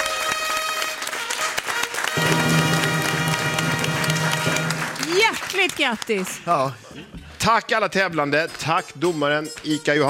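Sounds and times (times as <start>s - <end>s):
studio audience applause: 0.0s - 6.7s
speech: 5.6s - 10.0s.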